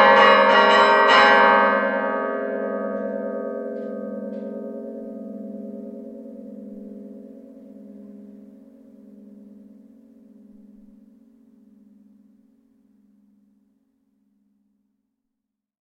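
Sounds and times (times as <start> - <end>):
carillon bells: 0.0 - 11.2.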